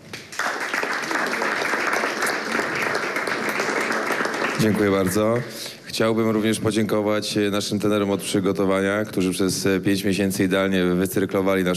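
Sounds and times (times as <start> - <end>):
audience applause: 0.0 - 5.7
speech: 4.6 - 11.7.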